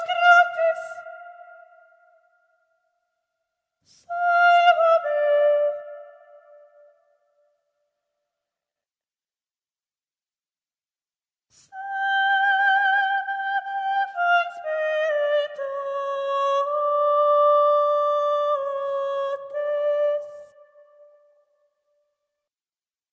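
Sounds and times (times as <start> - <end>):
soprano voice: 0.0 - 1.8, 3.9 - 6.4, 11.6 - 20.7.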